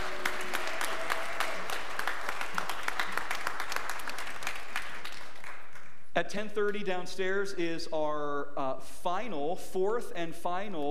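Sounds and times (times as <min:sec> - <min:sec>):
audience applause: 0:00.0 - 0:05.9
speech: 0:06.2 - 0:10.8.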